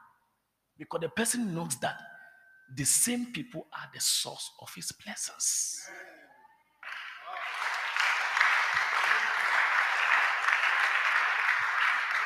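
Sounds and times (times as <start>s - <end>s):
speech: 0.8s - 2.1s, 2.7s - 6.2s
few people clapping: 6.8s - 12.2s.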